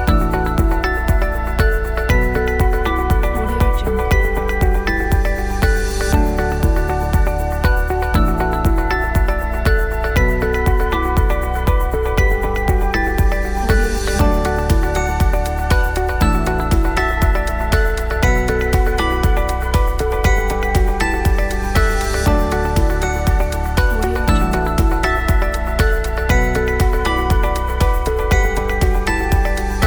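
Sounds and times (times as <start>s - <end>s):
upbeat and inspiring corporate music: 0.0s - 29.8s.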